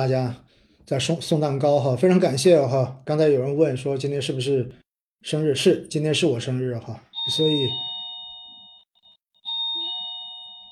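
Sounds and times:
speech: 0.0 - 7.9
electronic doorbell chime: 7.1 - 10.6.

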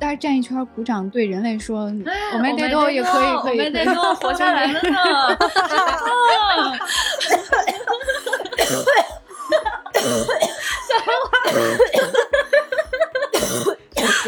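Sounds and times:
speech: 0.1 - 7.4
breathy laughter: 5.0 - 13.4
prolonged fit of harsh coughing: 6.7 - 12.5, 13.3 - 14.2.

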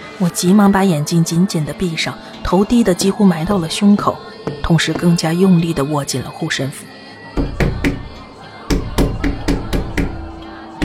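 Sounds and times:
speech: 0.2 - 6.9
knocking on glass: 4.4 - 5.3, 7.4 - 10.8.

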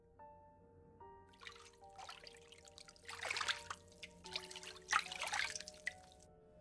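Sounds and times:
dripping liquid: 1.4 - 6.2.

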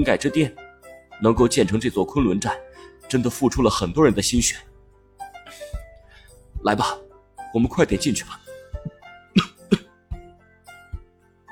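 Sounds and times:
speech: 0.0 - 0.6, 1.2 - 4.7, 6.6 - 8.8
person coughing: 8.9 - 10.0.

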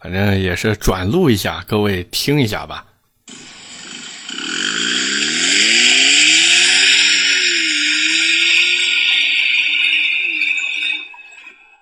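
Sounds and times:
speech: 0.0 - 2.9
modified SUV exhaust note: 3.3 - 10.8.

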